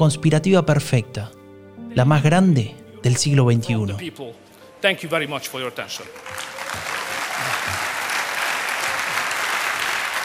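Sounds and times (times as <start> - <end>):
speech: 0.0 - 1.4, 2.0 - 7.6
audience applauding after speech: 5.7 - 10.2.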